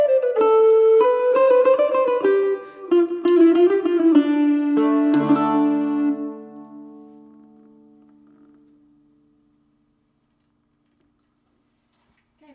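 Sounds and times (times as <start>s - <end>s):
medieval estampie dance music: 0.0s - 7.7s.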